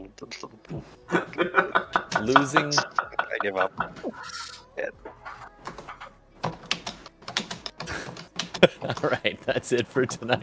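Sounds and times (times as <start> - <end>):
speech: 0.1 - 5.4, 8.6 - 10.4
laughter: 1.1 - 4.4, 7.8 - 10.4
typing on a computer keyboard: 5.7 - 9.1.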